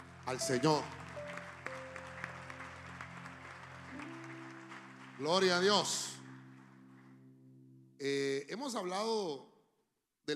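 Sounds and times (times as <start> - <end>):
audience clapping hands loudly: 0.0 - 7.2
speech: 0.3 - 1.0, 5.2 - 6.2, 8.0 - 9.5.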